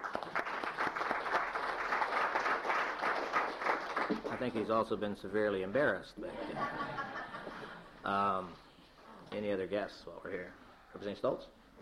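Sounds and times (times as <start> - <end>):
round of applause: 0.0 - 4.7
speech: 4.4 - 7.0, 8.0 - 8.6, 9.3 - 11.8
laughter: 6.2 - 8.0.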